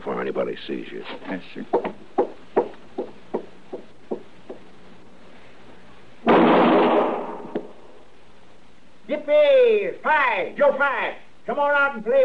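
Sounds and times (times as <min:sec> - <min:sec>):
speech: 0:00.2 - 0:02.1, 0:10.0 - 0:12.2
loud burst of noise: 0:06.2 - 0:07.7
gunshots in an alley radio drama sound effect: 0:06.2 - 0:07.8.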